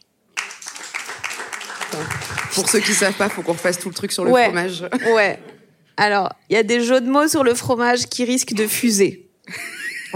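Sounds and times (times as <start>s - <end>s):
dense crowd of audience clapping loudly and steadily: 0.3s - 4.4s
speech: 1.9s - 9.8s.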